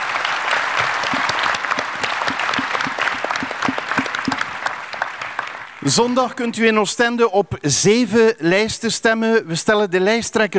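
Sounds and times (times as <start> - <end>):
audience applause: 0.0 - 6.0
speech: 5.8 - 10.5.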